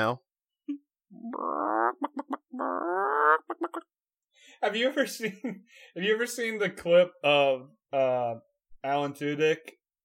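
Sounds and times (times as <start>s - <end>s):
speech: 0.0s - 9.8s
person imitating a chicken: 0.7s - 4.0s.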